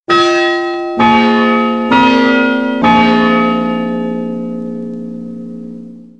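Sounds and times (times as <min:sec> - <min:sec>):
bell ringing: 0:00.1 - 0:05.4.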